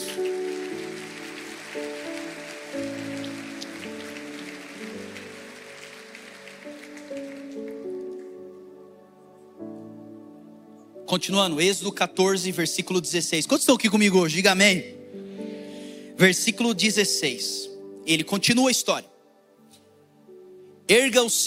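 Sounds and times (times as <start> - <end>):
audience clapping: 0.0 - 8.8
held keyboard chords: 0.0 - 21.4
speech: 11.1 - 15.0, 16.2 - 19.1, 20.9 - 21.4.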